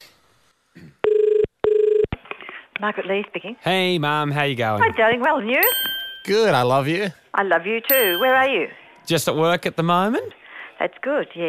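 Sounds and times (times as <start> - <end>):
outgoing phone call ringing tone: 1.0 - 2.1, 7.9 - 8.7
speech: 2.8 - 11.4.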